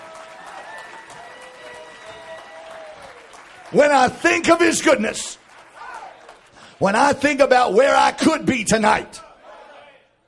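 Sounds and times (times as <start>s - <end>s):
audience clapping hands: 0.0s - 7.8s
speech: 3.7s - 5.4s, 6.8s - 9.2s.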